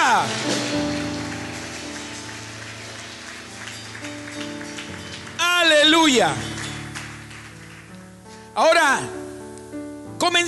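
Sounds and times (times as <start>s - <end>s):
audience applause: 0.0s - 8.2s
speech: 6.0s - 6.5s, 8.6s - 9.2s, 10.2s - 10.4s.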